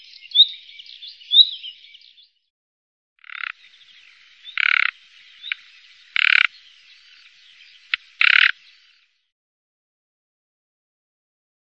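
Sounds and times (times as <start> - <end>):
bird voices: 0.0 - 2.5, 3.2 - 9.3.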